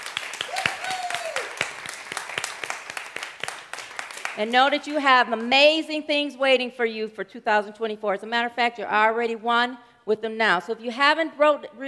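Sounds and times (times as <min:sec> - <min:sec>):
audience clapping for the band: 0:00.0 - 0:04.8
speech: 0:04.4 - 0:11.8.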